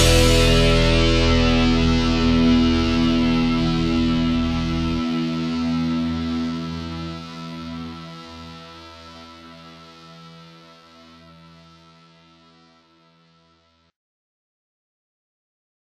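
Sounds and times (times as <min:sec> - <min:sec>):
fast groove: 0:00.0 - 0:05.7.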